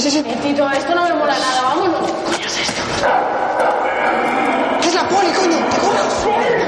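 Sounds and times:
speech: 0.0 - 4.3
dogs barking: 3.0 - 6.5.

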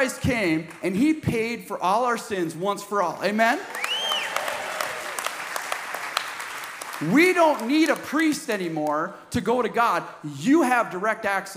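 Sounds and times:
speech: 0.0 - 3.9, 7.0 - 11.5
audience applause: 3.7 - 8.0.

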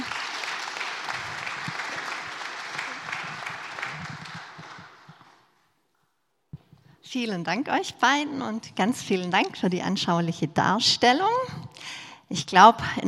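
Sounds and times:
audience applause: 0.0 - 5.6
speech: 7.1 - 13.0.

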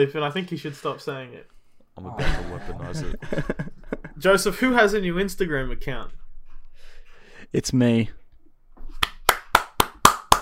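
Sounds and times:
speech: 0.0 - 6.2, 7.5 - 8.2
laughter: 2.0 - 4.6
hands clapping: 8.9 - 10.4.

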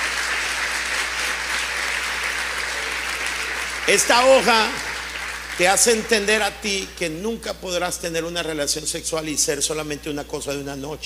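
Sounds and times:
audience applause: 0.0 - 6.6
speech: 3.9 - 4.9, 5.6 - 11.0.

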